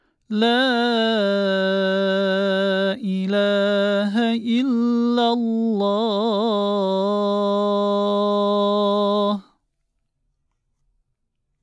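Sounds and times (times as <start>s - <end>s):
muezzin call to prayer: 0.3s - 9.5s.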